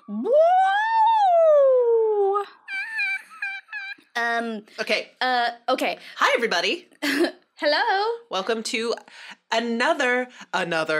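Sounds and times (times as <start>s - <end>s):
voice imitating a siren: 0.0s - 4.2s
speech: 4.2s - 10.9s.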